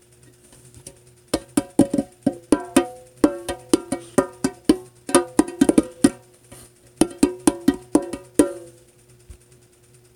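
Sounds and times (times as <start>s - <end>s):
casual bongos playing: 1.4s - 8.8s.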